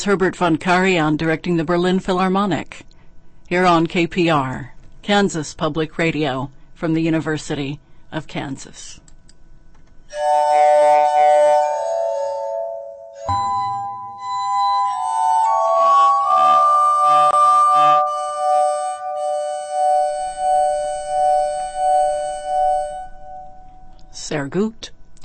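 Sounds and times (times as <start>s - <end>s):
speech: 0.0s - 2.9s, 3.5s - 9.0s, 10.1s - 11.4s, 13.3s - 13.5s, 24.3s - 25.0s
glass harmonica music: 10.1s - 24.0s.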